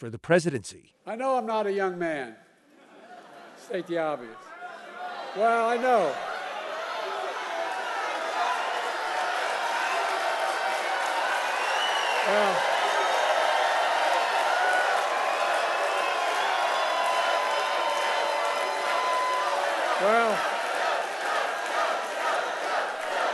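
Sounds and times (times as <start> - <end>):
speech: 0.0 - 2.5, 3.7 - 4.5, 5.3 - 6.3, 12.2 - 12.7, 20.0 - 20.5
supporters cheering Joe Biden at a campaign event: 6.1 - 23.2.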